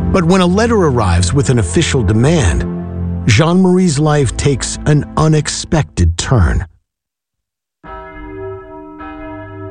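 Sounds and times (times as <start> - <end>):
speech: 0.1 - 6.7
bell ringing to end class: 7.9 - 9.6.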